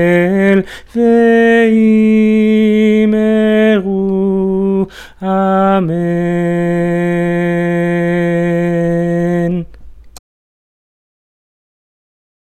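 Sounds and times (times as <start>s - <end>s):
soprano singing: 0.0s - 9.8s.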